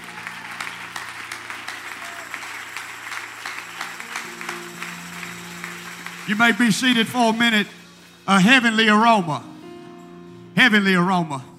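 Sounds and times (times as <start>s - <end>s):
audience clapping hands: 0.0s - 7.7s
speech: 6.3s - 9.5s, 10.6s - 11.5s.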